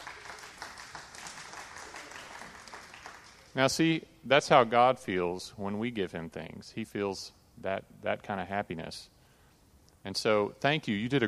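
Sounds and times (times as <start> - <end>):
audience clapping: 0.0 - 3.6
speech: 3.6 - 9.2, 10.0 - 11.2.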